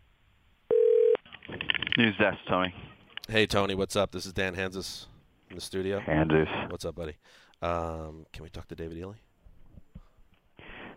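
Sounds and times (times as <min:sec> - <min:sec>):
telephone tone of a call to a newspaper news desk: 0:00.7 - 0:01.2
speech: 0:02.0 - 0:09.2.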